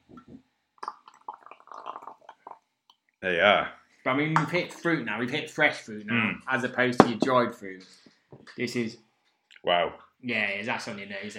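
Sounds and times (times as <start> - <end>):
sour beer fizzing and bubbling in a glass: 0.2 - 2.7
speech: 3.2 - 11.3.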